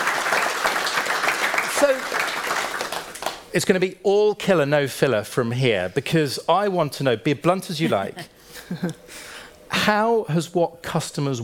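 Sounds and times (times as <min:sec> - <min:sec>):
audience applause: 0:00.0 - 0:03.5
speech: 0:01.8 - 0:02.4, 0:03.6 - 0:11.4.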